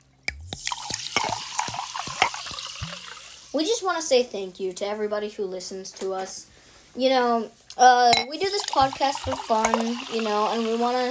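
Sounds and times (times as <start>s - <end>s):
sparkling mineral water being poured: 0.3s - 3.6s, 8.4s - 11.1s
speech: 3.6s - 11.1s.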